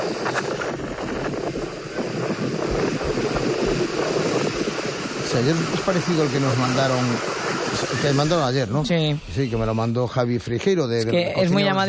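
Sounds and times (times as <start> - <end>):
low thuds and rumbles: 0.0 - 6.2
thunderstorm wind roaring: 0.0 - 10.8
speech: 5.4 - 11.8.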